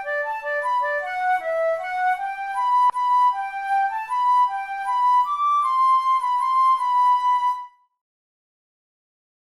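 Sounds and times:
flute: 0.0s - 8.0s.

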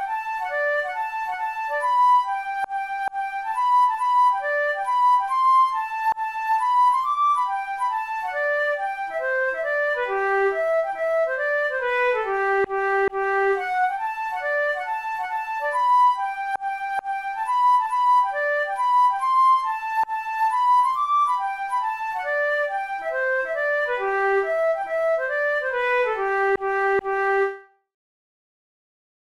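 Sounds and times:
flute melody: 0.0s - 27.8s.

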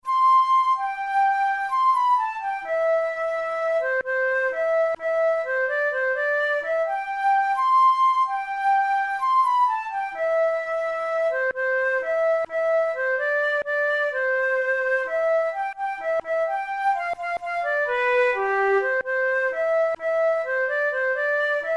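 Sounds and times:
flute: 0.0s - 21.7s.

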